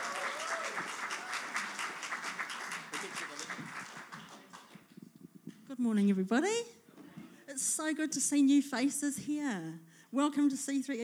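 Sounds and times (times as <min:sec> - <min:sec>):
crowd applause in a church at a morning service: 0:00.0 - 0:04.9
speech: 0:05.8 - 0:06.7, 0:07.8 - 0:11.0.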